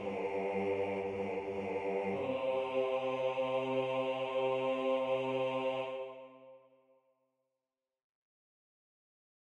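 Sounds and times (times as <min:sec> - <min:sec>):
bass part of a carol: 0:00.0 - 0:06.0.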